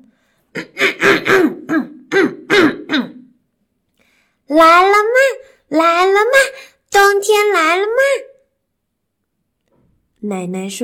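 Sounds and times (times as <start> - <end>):
speech: 0.5 - 0.9, 4.5 - 8.3, 10.2 - 10.8
throat clearing: 0.5 - 3.4.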